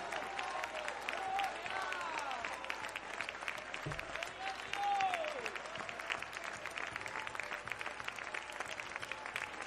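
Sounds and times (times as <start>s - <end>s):
audience praising God loudly: 0.0s - 2.8s, 3.9s - 6.6s
audience applauding: 0.0s - 9.6s.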